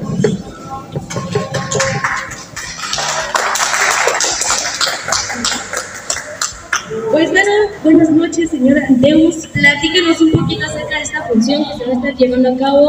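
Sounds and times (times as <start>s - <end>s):
audience applause: 1.6s - 6.9s
speech: 7.8s - 12.8s.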